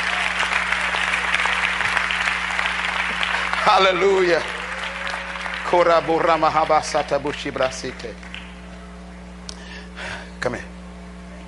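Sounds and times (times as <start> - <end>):
audience clapping: 0.0 - 8.8
speech: 3.7 - 4.5, 5.7 - 8.3, 10.4 - 10.7.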